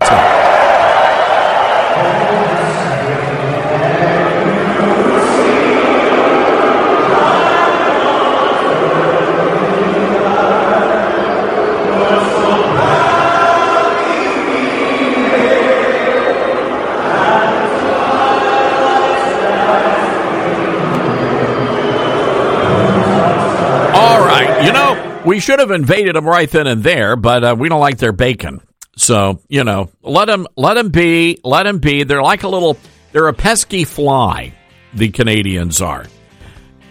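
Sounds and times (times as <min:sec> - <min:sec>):
Canadian crowd booing national anthem: 0:00.0 - 0:25.5
speech: 0:25.4 - 0:36.2.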